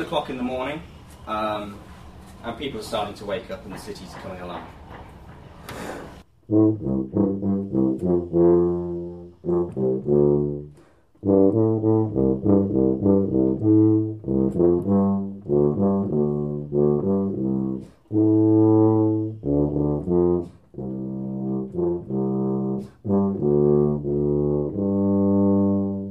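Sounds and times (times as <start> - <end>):
speech: 0.0 - 4.9, 6.5 - 8.4
brass band playing a rhythmic chordal piece: 6.5 - 26.1.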